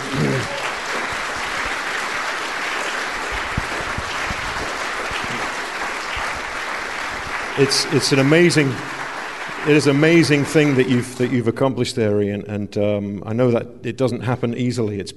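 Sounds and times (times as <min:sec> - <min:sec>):
audience applause: 0:00.0 - 0:11.5
speech: 0:07.6 - 0:08.9, 0:09.6 - 0:15.1.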